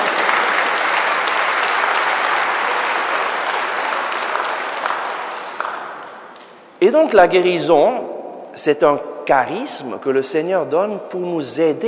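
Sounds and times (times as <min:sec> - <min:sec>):
audience applause: 0:00.0 - 0:06.4
speech: 0:06.8 - 0:11.8.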